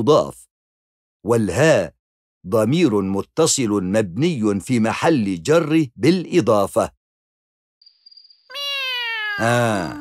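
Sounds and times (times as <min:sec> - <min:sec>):
speech: 0:00.0 - 0:00.4, 0:01.2 - 0:07.0, 0:09.4 - 0:09.9
hungry cat meowing: 0:08.5 - 0:09.9.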